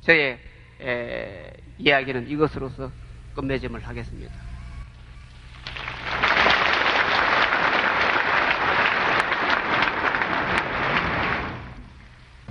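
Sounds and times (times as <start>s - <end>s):
speech: 0.0s - 4.5s
audience applause: 5.4s - 12.2s.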